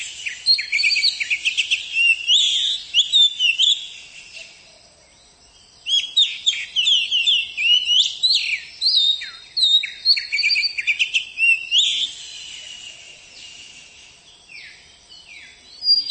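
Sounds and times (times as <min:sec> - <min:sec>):
Oriental magpie-robin song: 0:00.0 - 0:04.6, 0:05.4 - 0:12.2, 0:14.6 - 0:16.0.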